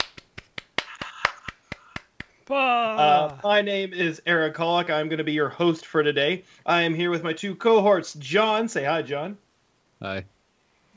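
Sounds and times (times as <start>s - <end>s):
round of applause: 0.0s - 2.4s
speech: 2.5s - 9.4s, 10.0s - 10.4s.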